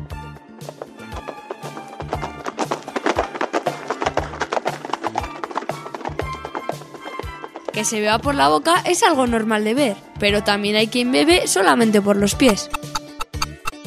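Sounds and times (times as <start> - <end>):
zebra hooves galloping: 0.0 - 9.8
speech: 7.8 - 12.8.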